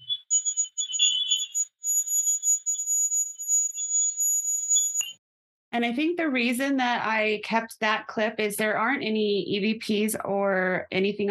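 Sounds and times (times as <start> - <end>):
high-pitched electronic beeping from a temperature gauge: 0.0 - 5.2
speech: 5.7 - 11.2.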